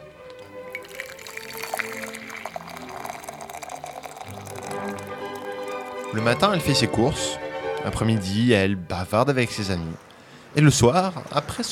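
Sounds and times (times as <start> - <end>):
tea being poured into a cup: 0.3 - 6.9
speech: 6.1 - 11.7.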